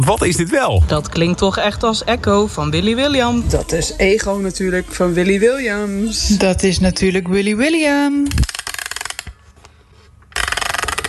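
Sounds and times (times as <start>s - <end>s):
speech: 0.0s - 8.4s
music box being wound up: 8.3s - 9.3s, 10.3s - 11.0s.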